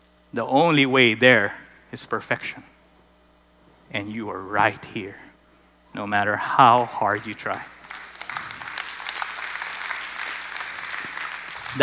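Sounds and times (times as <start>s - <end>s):
speech: 0.3s - 2.7s, 3.9s - 5.3s, 6.0s - 7.8s
audience clapping: 6.6s - 11.8s.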